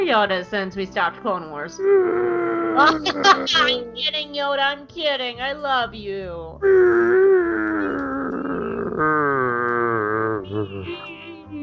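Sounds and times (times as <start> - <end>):
speech: 0.1 - 7.2
voice imitating a long burp: 1.9 - 4.0, 6.6 - 10.9.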